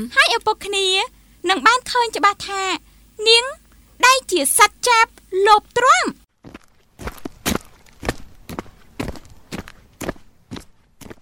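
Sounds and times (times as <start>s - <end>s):
speech: 0.0s - 6.2s
crunchy footsteps walking on a road: 6.4s - 11.1s.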